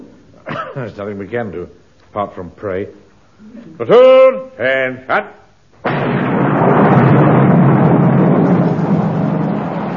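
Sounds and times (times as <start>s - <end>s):
speech: 0.8s - 6.2s
heavy rain shower: 6.4s - 9.9s.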